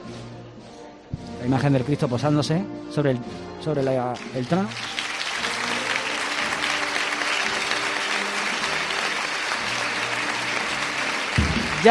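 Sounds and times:
speech: 1.4s - 5.0s
crowd applause: 4.1s - 11.8s.

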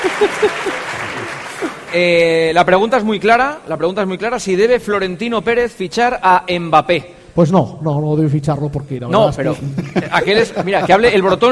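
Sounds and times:
laughter: 0.0s - 1.9s, 9.4s - 11.5s
applause: 0.0s - 2.1s
speech: 2.0s - 11.5s.

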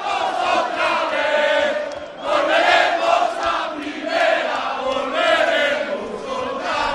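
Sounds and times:
crowd singing football club anthem in Pamplona: 0.0s - 6.9s.

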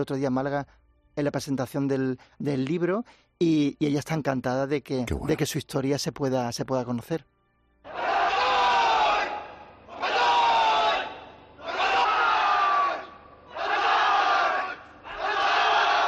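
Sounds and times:
speech: 0.0s - 7.3s
Japanese soldiers shouting banzai war cry: 7.9s - 16.0s.

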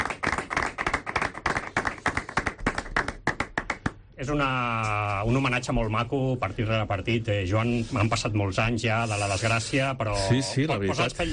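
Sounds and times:
stadium crowd applauding: 0.0s - 3.9s
speech: 4.2s - 11.3s.

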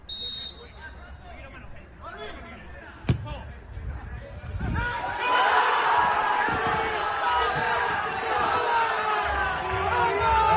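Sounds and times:
football players and staff shouting: 4.8s - 10.5s.

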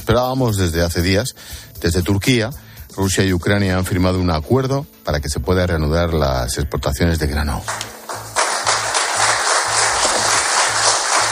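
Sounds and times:
speech: 0.1s - 8.0s
applause in the room where the agreement was signed: 7.6s - 11.3s.

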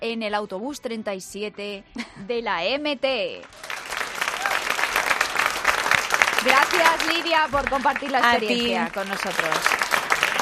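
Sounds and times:
speech: 0.0s - 3.7s, 6.4s - 9.9s
audience applause for a guest: 3.5s - 10.3s.

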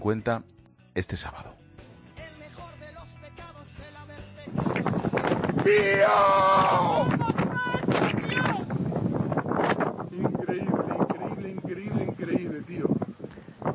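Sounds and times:
speech: 0.0s - 1.6s, 5.6s - 7.1s, 11.4s - 13.0s
strong wind blowing during forest fires in Asturias: 4.5s - 13.7s.

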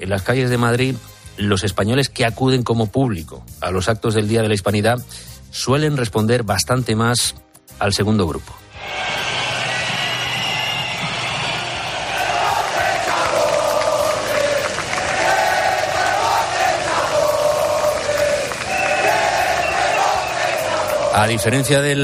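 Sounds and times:
speech: 0.0s - 9.3s, 21.2s - 22.0s
people shouting: 8.8s - 21.7s
large crowd booing: 8.8s - 22.0s.

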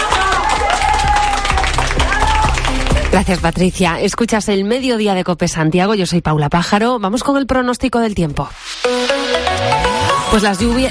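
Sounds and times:
people cheering: 0.0s - 3.3s
crowd clapping: 0.0s - 3.8s
speech: 3.2s - 10.9s.

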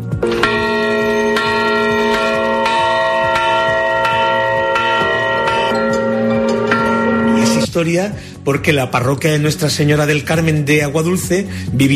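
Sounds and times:
newly blessed church bells ringing: 0.1s - 7.7s
speech: 7.8s - 11.9s.

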